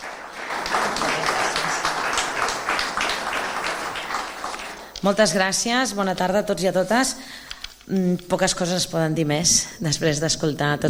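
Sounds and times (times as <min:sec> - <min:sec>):
audience applause: 0:00.0 - 0:05.0
speech: 0:05.0 - 0:10.8.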